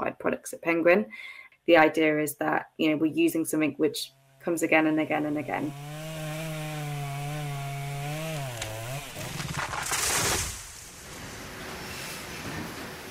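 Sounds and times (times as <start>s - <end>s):
speech: 0.0s - 6.1s
chainsaw cutting down trees: 4.0s - 10.9s.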